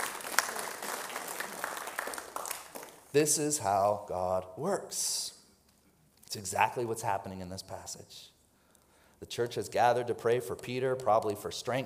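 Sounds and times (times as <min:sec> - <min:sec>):
audience clapping: 0:00.0 - 0:03.1
speech: 0:03.1 - 0:05.4, 0:06.3 - 0:08.3, 0:09.2 - 0:11.8.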